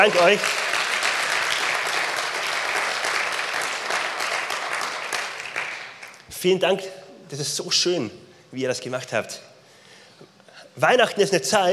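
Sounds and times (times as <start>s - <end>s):
speech: 0.0s - 0.8s, 6.4s - 9.5s, 10.8s - 11.7s
audience applause: 0.0s - 6.2s.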